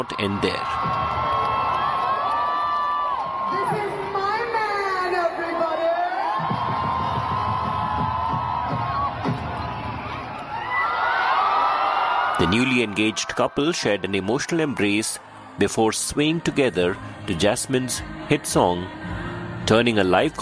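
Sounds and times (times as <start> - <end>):
speech: 0.0 - 1.0, 12.4 - 19.1, 19.7 - 20.3
large concert crowd roaring and cheering: 0.0 - 15.4
high-pitched screams and whoops: 0.1 - 4.1, 6.0 - 13.8.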